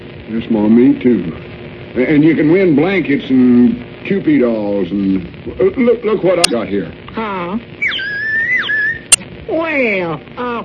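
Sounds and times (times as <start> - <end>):
speech: 0.3 - 7.8, 9.5 - 10.6
bird-imitating toy whistle being blown: 7.8 - 9.2.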